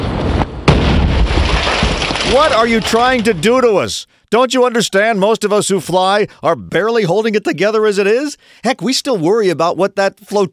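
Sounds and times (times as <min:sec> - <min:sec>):
car bomb explosion: 0:00.0 - 0:03.5
speech: 0:02.3 - 0:10.5.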